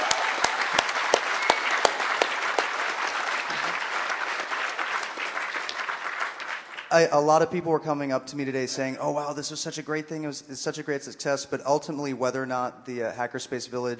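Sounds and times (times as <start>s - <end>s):
audience applause: 0.0s - 7.1s
speech: 6.9s - 13.9s.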